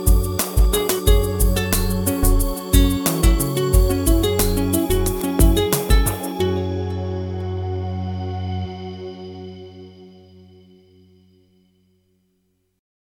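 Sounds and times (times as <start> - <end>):
guitar: 0.0 - 11.2.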